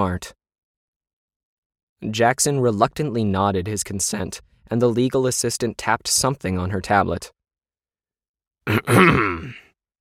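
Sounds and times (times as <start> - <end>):
speech: 0.0 - 0.4, 2.0 - 7.4, 8.6 - 9.7
deep scratchy voice clearing its throat for an AI avatar character: 8.6 - 9.8.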